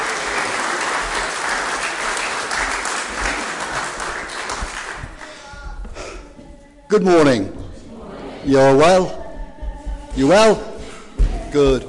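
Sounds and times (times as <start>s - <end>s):
audience applause: 0.0s - 5.5s
speech: 6.9s - 7.6s, 8.4s - 9.2s, 10.2s - 10.7s, 11.5s - 11.8s.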